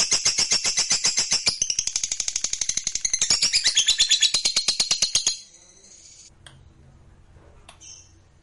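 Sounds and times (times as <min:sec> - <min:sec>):
lovebird trilling: 0:00.2 - 0:06.3.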